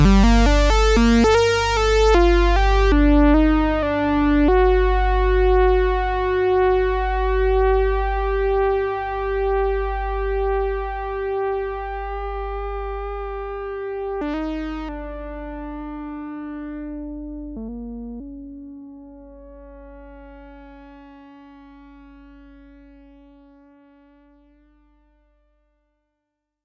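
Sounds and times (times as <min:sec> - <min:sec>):
soft solo synthesizer: 0:00.0 - 0:20.9.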